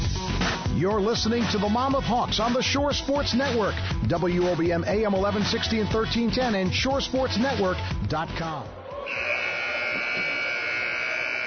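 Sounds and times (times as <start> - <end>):
speech: 0.8 - 9.4
basketball arena horn: 9.0 - 11.4.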